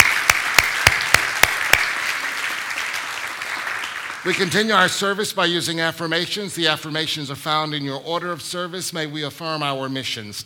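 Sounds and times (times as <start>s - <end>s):
audience applause: 0.0s - 4.4s
speech: 4.2s - 10.4s.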